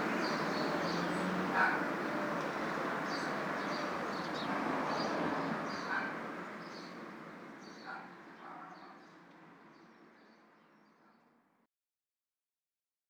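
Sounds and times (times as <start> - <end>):
city traffic background ambience: 0.0 - 9.7.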